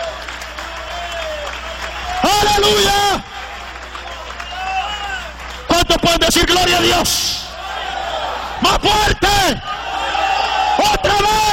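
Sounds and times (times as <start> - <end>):
audience applause: 0.0 - 8.6, 9.6 - 11.5
speech: 2.6 - 3.3, 6.0 - 7.4, 8.6 - 9.7.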